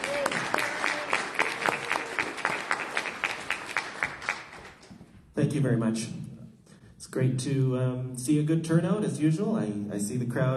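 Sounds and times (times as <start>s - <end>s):
audience applause: 0.0s - 4.9s
speech: 5.5s - 6.2s, 7.1s - 10.5s.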